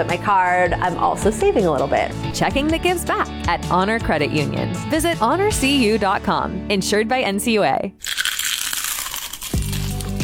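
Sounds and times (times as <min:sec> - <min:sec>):
speech: 0:00.0 - 0:08.3
crunch of biting into a Clementine's onion ring: 0:08.0 - 0:10.2.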